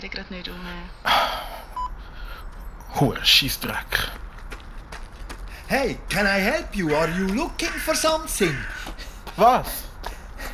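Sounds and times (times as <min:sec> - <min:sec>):
speech: 0:00.0 - 0:01.5, 0:02.9 - 0:04.2, 0:05.7 - 0:09.9
voicemail beep tone: 0:01.5 - 0:02.0.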